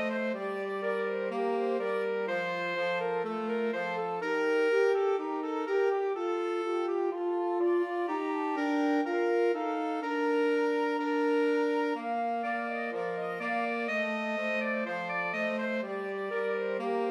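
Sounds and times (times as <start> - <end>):
alto saxophone playing a Christmas carol in a trio: 0.0 - 17.0
flute playing a Christmas carol in a trio: 0.0 - 17.0.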